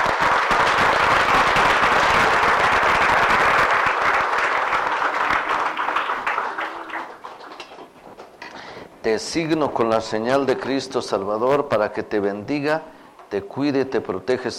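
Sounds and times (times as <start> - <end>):
audience applause: 0.0 - 8.3
speech: 9.1 - 14.5.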